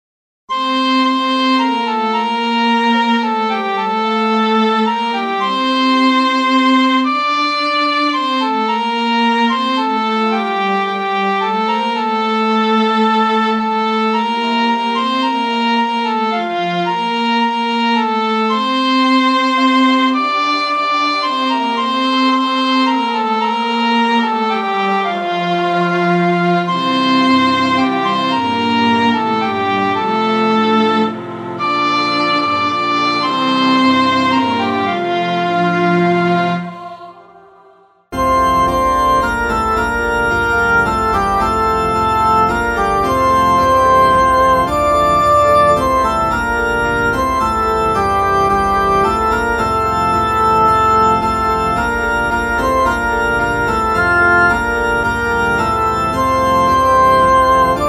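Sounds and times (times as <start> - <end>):
keyboard music: 0.5 - 37.4, 38.1 - 57.8.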